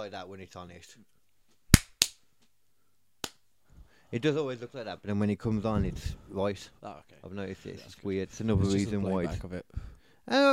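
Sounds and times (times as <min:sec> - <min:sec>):
speech: 0:00.0 - 0:01.2, 0:04.1 - 0:10.5
hand clap for audio sync: 0:01.7 - 0:02.2, 0:03.2 - 0:03.4.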